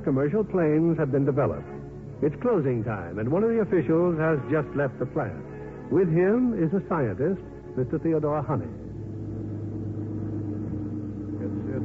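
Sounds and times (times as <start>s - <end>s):
speech: 0.1s - 8.8s
car engine hum as radio drama effect: 8.1s - 11.8s.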